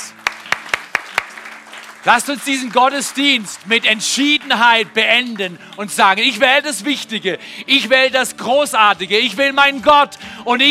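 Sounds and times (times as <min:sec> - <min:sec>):
audience applause: 0:00.0 - 0:06.4
speech: 0:02.0 - 0:10.6.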